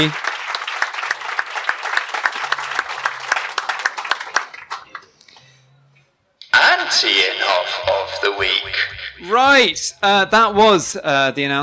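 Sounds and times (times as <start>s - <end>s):
speech: 0.0s - 0.2s, 7.0s - 11.6s
audience applause: 0.0s - 5.1s.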